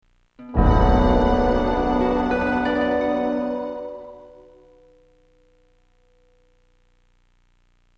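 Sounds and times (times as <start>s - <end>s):
awe chord: 0.5s - 4.6s.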